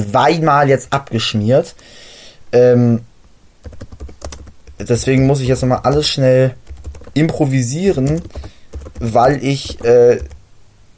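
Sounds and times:
speech: 0:00.1 - 0:06.6, 0:07.2 - 0:10.3
typing on a computer keyboard: 0:03.6 - 0:10.4.

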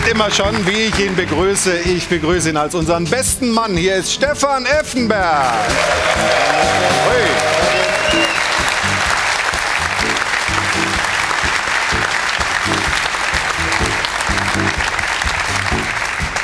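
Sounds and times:
speech: 0:00.1 - 0:08.4
audience applause: 0:05.4 - 0:16.4.

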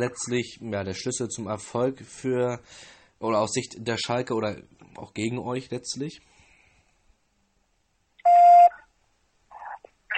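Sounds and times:
speech: 0:00.0 - 0:06.3
conference call join electronic beep: 0:08.2 - 0:08.8.

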